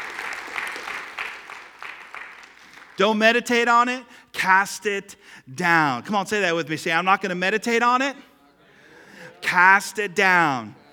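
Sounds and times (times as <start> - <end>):
audience applause: 0.0 - 3.0
speech: 3.0 - 8.3, 9.5 - 10.8.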